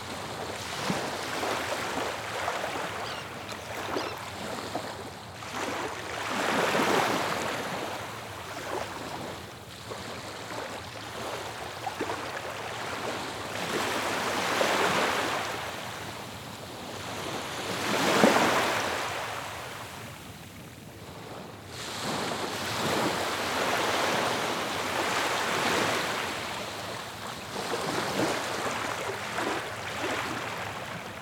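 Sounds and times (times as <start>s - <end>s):
calm waves on a sandy coast: 0.0s - 31.2s.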